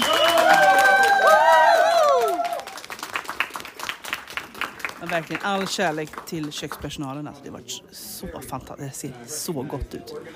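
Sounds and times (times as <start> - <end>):
audience applause: 0.0 - 6.8
speech: 5.1 - 10.3.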